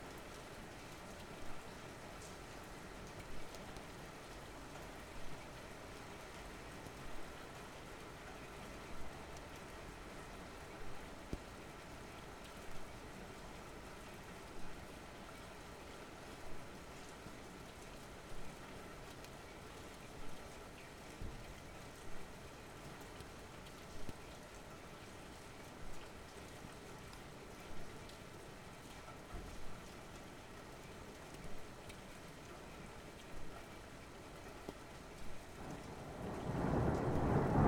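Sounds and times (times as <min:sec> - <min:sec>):
rain out of window: 0:00.0 - 0:37.6
thunder: 0:35.6 - 0:37.6.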